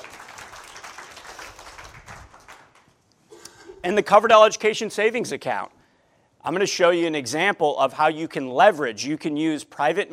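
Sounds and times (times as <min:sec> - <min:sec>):
audience applause: 0:00.0 - 0:02.9
speech: 0:03.8 - 0:05.8, 0:06.4 - 0:10.1.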